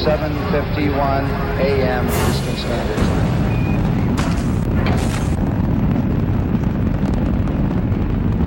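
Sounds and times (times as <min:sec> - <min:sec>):
speech: 0:00.0 - 0:03.4
rocket lifting off its launch pad: 0:02.3 - 0:08.4.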